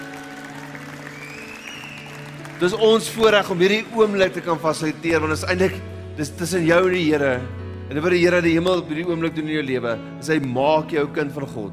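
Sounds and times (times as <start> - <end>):
audience clapping: 0.0 - 5.1
speech: 2.6 - 11.7.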